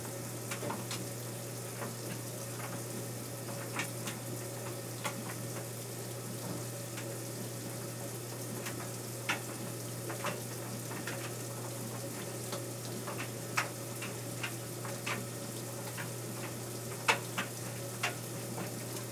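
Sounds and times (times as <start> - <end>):
washing machine filling: 0.0 - 19.0.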